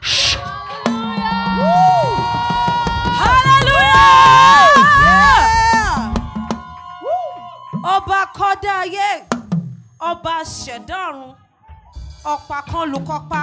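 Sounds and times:
audience roaring and cheering in praise: 0:00.0 - 0:09.0
shouts and whoops: 0:00.3 - 0:09.0
speech: 0:10.2 - 0:11.4, 0:12.2 - 0:13.4.

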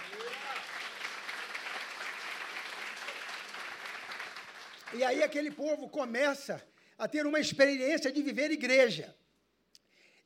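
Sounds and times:
audience applause: 0:00.0 - 0:05.6
speech: 0:04.9 - 0:09.2.

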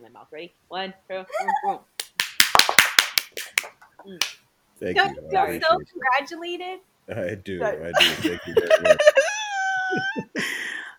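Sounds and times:
speech: 0:00.1 - 0:02.0, 0:03.3 - 0:10.5
crowd hand clapping applause: 0:02.0 - 0:04.4
laughter: 0:04.9 - 0:06.0, 0:07.7 - 0:10.6.

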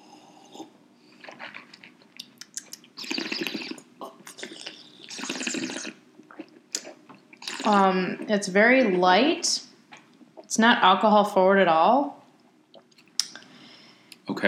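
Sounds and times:
wine being swirled, swished and sipped: 0:00.0 - 0:08.3
speech: 0:07.7 - 0:09.6, 0:10.6 - 0:12.2.

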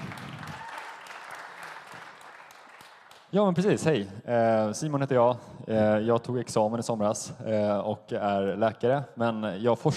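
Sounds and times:
audience applause: 0:00.0 - 0:03.3
speech: 0:03.3 - 0:09.9.

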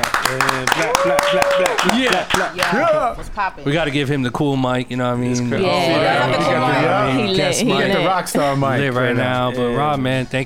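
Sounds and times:
round of applause: 0:00.0 - 0:02.9
speech: 0:00.6 - 0:10.4.

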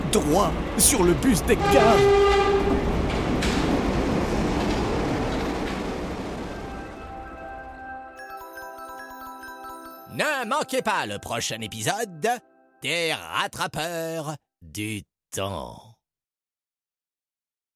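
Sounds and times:
metro train arriving through a tunnel: 0:00.0 - 0:09.1
speech: 0:00.1 - 0:02.8, 0:10.7 - 0:15.9.

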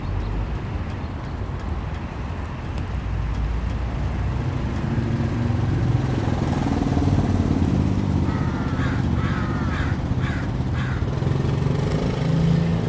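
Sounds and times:
low rumble of passing traffic in a backyard: 0:00.0 - 0:12.8
crow cawing: 0:08.2 - 0:11.1.

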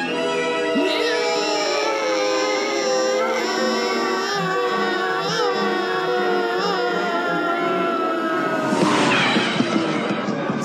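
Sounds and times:
man screaming imitating a movie character's anguished cry: 0:00.1 - 0:10.5.

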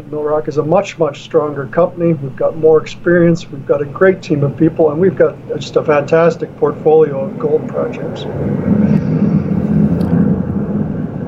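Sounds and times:
speech: 0:00.0 - 0:09.1
airplane flying overhead: 0:00.0 - 0:11.2.

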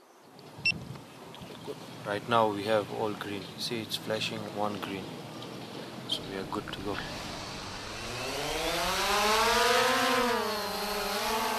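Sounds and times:
speech: 0:02.1 - 0:05.2, 0:06.1 - 0:07.2
small drone rotors whining, lifting off and hovering: 0:06.1 - 0:11.5.

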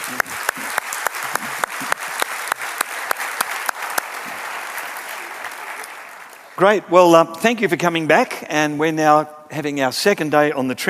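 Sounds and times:
audience applause: 0:00.0 - 0:06.7
speech: 0:06.6 - 0:10.8.

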